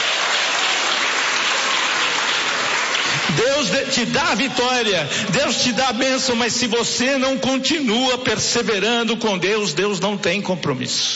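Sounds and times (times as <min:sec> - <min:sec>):
congregation clapping hands for Jesus during a church service: 0:00.0 - 0:05.2
speech: 0:03.4 - 0:11.1.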